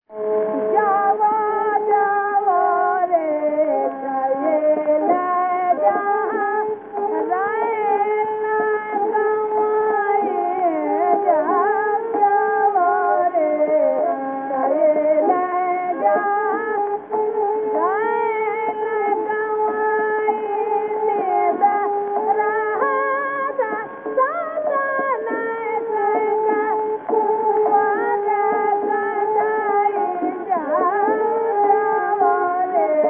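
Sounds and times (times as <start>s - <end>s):
thumri classical Indian vocal piece: 0.1s - 33.0s.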